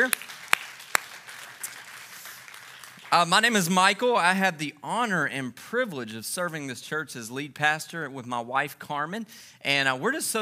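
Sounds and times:
speech: 0:00.0 - 0:00.3, 0:03.2 - 0:10.4
audience applause: 0:00.0 - 0:03.7.

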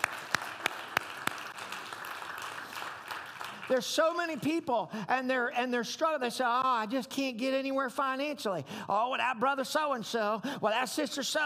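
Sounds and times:
audience hand clapping: 0:00.0 - 0:04.5
speech: 0:03.7 - 0:11.4.

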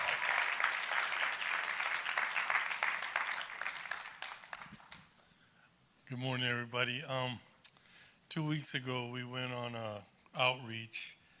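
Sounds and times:
audience applause: 0:00.0 - 0:05.2
speech: 0:06.1 - 0:07.5, 0:08.4 - 0:11.2.

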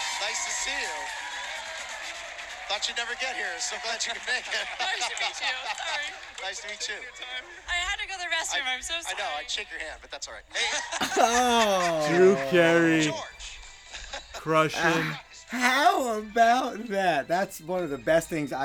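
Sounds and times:
speech: 0:00.2 - 0:01.5, 0:02.7 - 0:13.4, 0:14.4 - 0:18.6
crowd chanting and cheering: 0:11.1 - 0:13.1
laughter: 0:11.1 - 0:13.2, 0:14.4 - 0:18.6.

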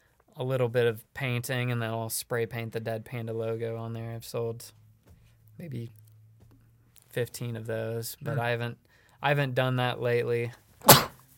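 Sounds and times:
speech: 0:00.4 - 0:04.8, 0:05.6 - 0:06.0, 0:07.1 - 0:11.1
sneeze: 0:10.8 - 0:11.2.

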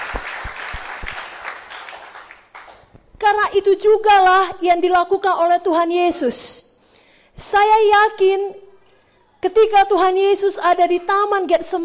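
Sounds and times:
crowd clapping: 0:00.0 - 0:02.9
speech: 0:03.2 - 0:06.6, 0:07.5 - 0:08.6, 0:09.4 - 0:11.8.

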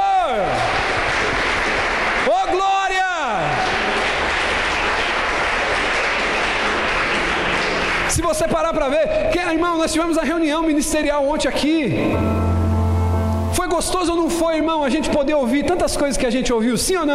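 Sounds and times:
audience applause: 0:00.0 - 0:08.8
speech: 0:08.2 - 0:12.6, 0:13.7 - 0:17.1.

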